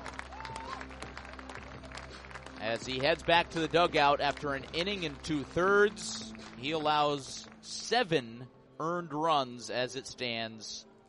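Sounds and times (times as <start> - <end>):
crowd ovation at TD Ballpark during a Dunedin Blue Jays baseball game: 0.0 - 8.1
speech: 2.7 - 10.9.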